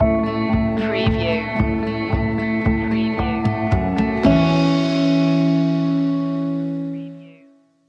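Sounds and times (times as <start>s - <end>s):
walking home musical stinger: 0.0s - 7.7s.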